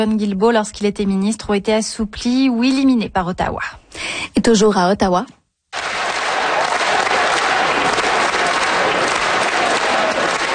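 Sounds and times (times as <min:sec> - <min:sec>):
speech: 0:00.0 - 0:05.9
MPs applauding in Canada's House of Commons for Olympic and Paralympic athletes: 0:05.8 - 0:10.5.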